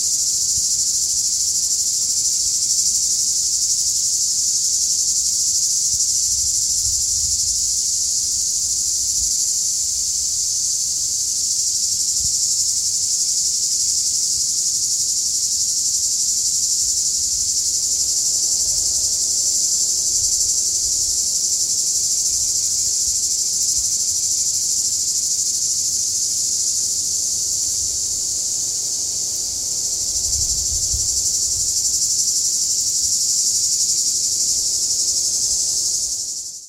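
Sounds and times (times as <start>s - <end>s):
crickets chirping in Catalonia: 0.0s - 36.6s.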